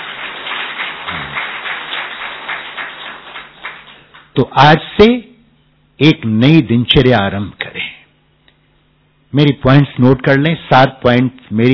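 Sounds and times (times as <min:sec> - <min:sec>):
audience clapping: 0:00.0 - 0:04.4
speech: 0:04.4 - 0:05.3, 0:06.0 - 0:07.6, 0:09.3 - 0:11.7.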